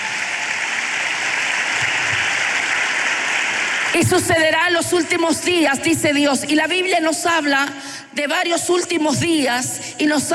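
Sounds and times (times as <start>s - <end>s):
audience applauding: 0.0s - 4.2s
speech: 4.0s - 10.3s.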